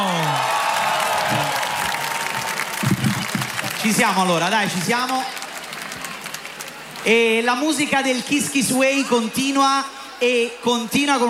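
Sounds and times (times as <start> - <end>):
audience applause: 0.0 - 7.4
speech: 3.8 - 5.4, 7.0 - 11.2.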